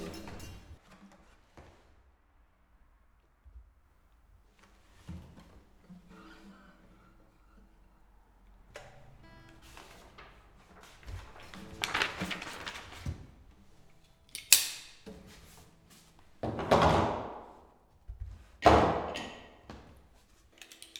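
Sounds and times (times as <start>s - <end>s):
background noise in Lichtenberg, Brandenburg: 0.0s - 20.9s.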